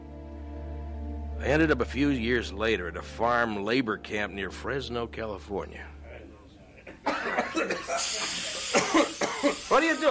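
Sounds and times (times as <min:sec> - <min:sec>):
speech: 0:01.4 - 0:06.0, 0:09.7 - 0:10.0
insecticide spray hissing onto a blanket: 0:07.9 - 0:10.0.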